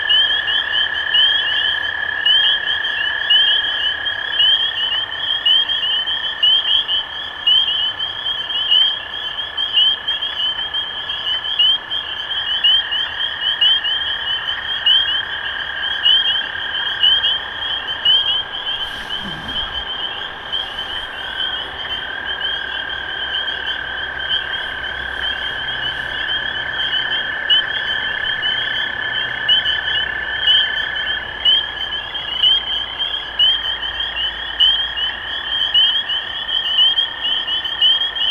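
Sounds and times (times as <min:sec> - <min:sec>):
spring peepers peeping: 0:00.2 - 0:38.2
low droning trill: 0:17.2 - 0:29.5.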